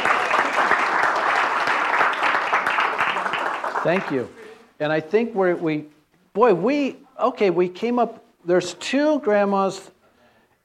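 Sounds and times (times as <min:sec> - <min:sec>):
audience applause: 0:00.0 - 0:04.4
speech: 0:03.8 - 0:10.0.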